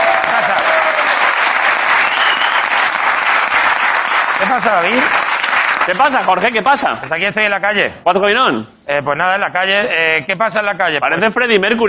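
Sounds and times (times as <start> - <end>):
audience applause: 0.0 - 6.4
speech: 4.6 - 5.2, 5.8 - 11.8.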